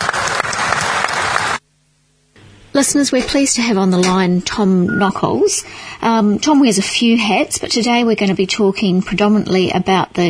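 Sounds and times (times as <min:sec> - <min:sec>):
audience applause: 0:00.0 - 0:01.6
speech: 0:02.8 - 0:10.2.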